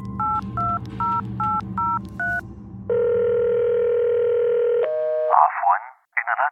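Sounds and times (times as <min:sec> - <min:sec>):
steady telephone tone: 0:00.1 - 0:05.4
recorded voice on the phone line: 0:05.3 - 0:06.4.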